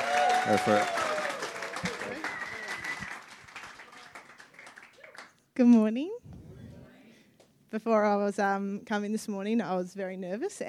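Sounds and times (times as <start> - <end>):
audience applause at a church service: 0.0 - 5.3
speech: 0.5 - 1.0, 5.6 - 6.2, 7.7 - 10.6.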